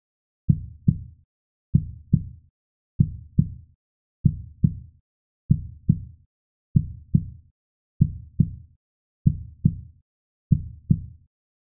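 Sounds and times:
human heartbeat at normal speed in hospital emergency: 0:01.8 - 0:02.4, 0:03.0 - 0:03.6, 0:04.2 - 0:04.8, 0:05.5 - 0:06.1, 0:06.8 - 0:07.4, 0:08.0 - 0:08.6, 0:09.2 - 0:09.9, 0:10.5 - 0:11.1.

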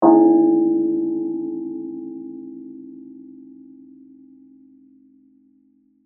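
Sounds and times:
church bell ringing: 0:00.0 - 0:04.4.

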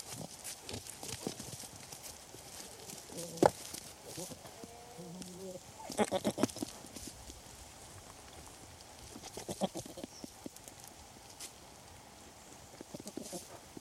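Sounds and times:
rustling: 0:00.0 - 0:13.7
wind: 0:00.0 - 0:13.7
goat bleating: 0:04.1 - 0:06.7, 0:09.2 - 0:10.1.

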